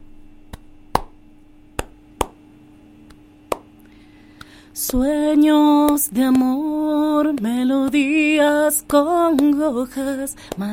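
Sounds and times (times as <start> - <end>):
faint steady hum: 0.0 - 10.7
rhythmic hand clapping: 0.5 - 1.2, 1.8 - 2.4, 3.1 - 3.7, 5.8 - 6.5, 9.2 - 9.6, 10.5 - 10.7
speech: 4.8 - 10.7.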